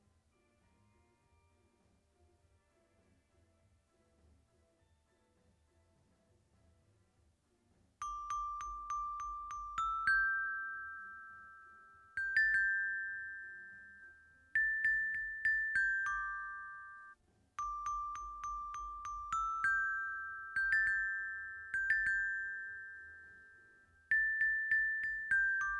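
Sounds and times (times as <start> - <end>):
xylophone: 8.0 - 25.7.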